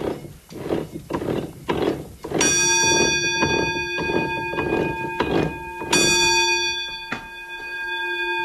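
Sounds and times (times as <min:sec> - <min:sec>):
water mill machinery: 0:00.0 - 0:06.7
warning bell on the mill's roller mills ringing: 0:02.4 - 0:08.4.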